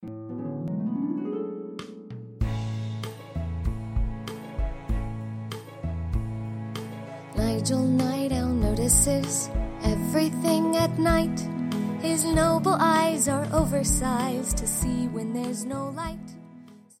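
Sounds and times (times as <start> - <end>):
song: 0.0 - 16.3.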